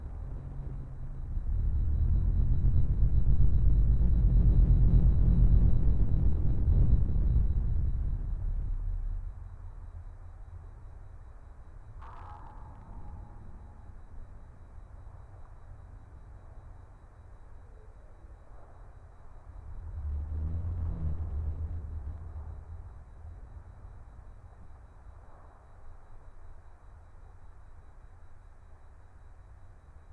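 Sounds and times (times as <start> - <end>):
tense desolate future war ambience: 0.0 - 30.1.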